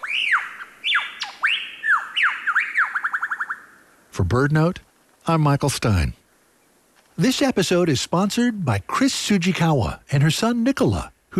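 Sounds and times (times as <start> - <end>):
lyrebird mimicking a laughing kookaburra: 0.0 - 3.8
speech: 4.2 - 6.2, 7.2 - 11.3.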